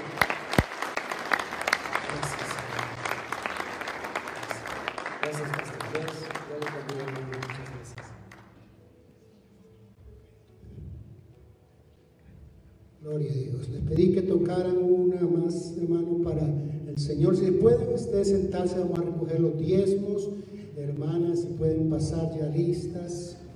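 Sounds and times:
audience applause: 0:00.0 - 0:08.6
speech: 0:13.9 - 0:23.5.

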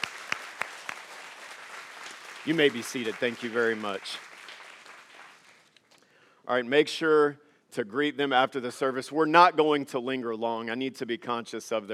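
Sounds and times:
audience applause: 0:00.0 - 0:05.8
speech: 0:02.4 - 0:04.3, 0:06.5 - 0:11.9.

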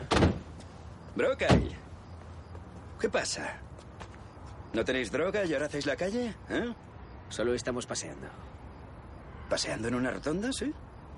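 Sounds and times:
police car doors slamming as officers get out: 0:00.0 - 0:00.6, 0:01.4 - 0:01.8
speech: 0:01.2 - 0:01.8, 0:03.0 - 0:03.7, 0:04.7 - 0:08.5, 0:09.5 - 0:10.8.

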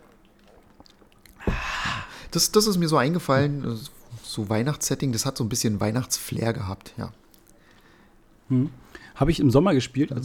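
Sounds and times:
someone sipping a cup of cocoa: 0:00.0 - 0:02.3
speech: 0:02.3 - 0:07.2, 0:08.5 - 0:10.2.

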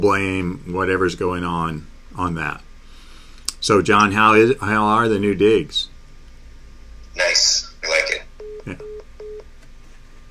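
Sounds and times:
speech: 0:00.0 - 0:02.7, 0:03.6 - 0:05.9, 0:07.2 - 0:08.1, 0:08.7 - 0:08.9
beeping of a disconnected call: 0:07.4 - 0:09.5.

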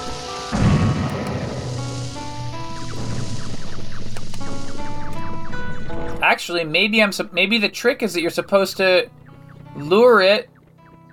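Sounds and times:
electronic game music: 0:00.0 - 0:11.1
bomb rock exploding in a video game: 0:00.5 - 0:06.2
speech: 0:06.3 - 0:09.2, 0:09.8 - 0:10.5.

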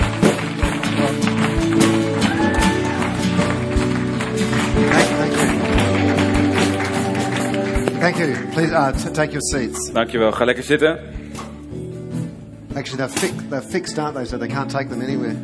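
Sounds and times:
church audience applause: 0:00.0 - 0:08.9
speech: 0:08.1 - 0:11.2, 0:12.8 - 0:15.4.

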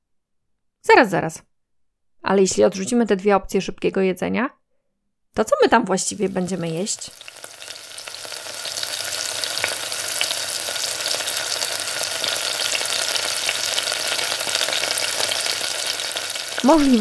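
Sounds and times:
speech: 0:00.8 - 0:01.5, 0:02.2 - 0:04.6, 0:05.3 - 0:07.5, 0:16.6 - 0:16.9
food deep-frying in hot oil: 0:05.8 - 0:16.9.

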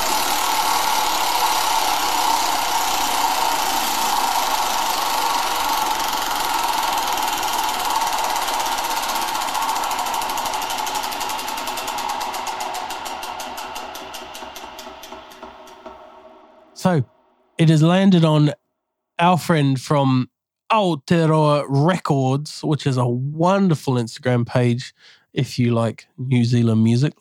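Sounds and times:
prize wheel ticking clicks: 0:00.0 - 0:16.4
large prize wheel spinning: 0:00.0 - 0:18.6
speech: 0:17.6 - 0:18.6, 0:19.2 - 0:27.1.

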